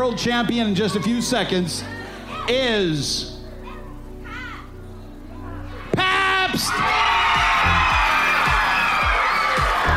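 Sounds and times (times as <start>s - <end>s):
speech: 0.0s - 3.3s, 6.6s - 7.0s
crowd roaring and cheering at the 2009 Ugly Dog contest in Sonoma County, California: 5.8s - 9.9s.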